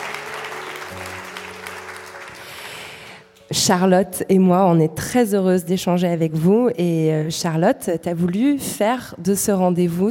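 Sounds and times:
audience applauding warmly: 0:00.0 - 0:03.4
speech: 0:03.5 - 0:10.0.

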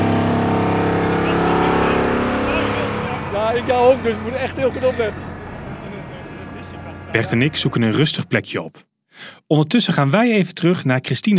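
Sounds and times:
vibratory pile driver driving a steel sheet pile: 0:00.0 - 0:08.3
speech: 0:03.7 - 0:05.3, 0:07.1 - 0:11.3.

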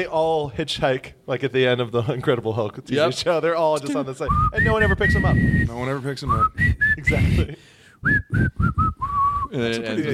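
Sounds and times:
speech: 0:00.0 - 0:10.1
person whistling a sad tune: 0:04.3 - 0:09.5.

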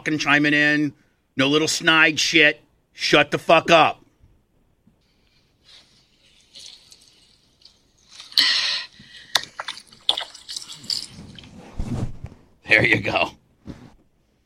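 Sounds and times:
speech: 0:00.0 - 0:04.0, 0:12.7 - 0:13.4
garden hose spraying water: 0:05.1 - 0:11.6.

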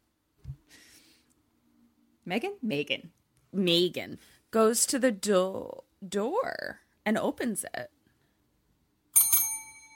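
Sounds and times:
speech: 0:02.3 - 0:08.0
bell dinging: 0:09.2 - 0:09.9.

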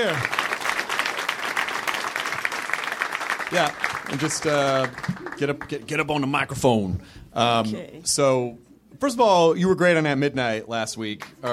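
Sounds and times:
speech: 0:00.0 - 0:00.4, 0:03.5 - 0:11.5
crowd applause welcoming a podcast guest: 0:00.0 - 0:06.4.

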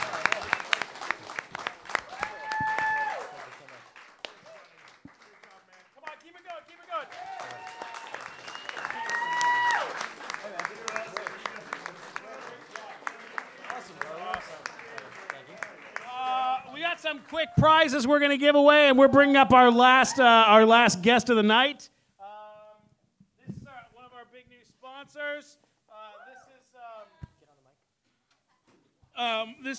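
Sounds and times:
audience whooping and cheering: 0:00.0 - 0:03.7, 0:07.0 - 0:12.0
audience applause: 0:00.0 - 0:17.9
speech: 0:17.3 - 0:21.9.

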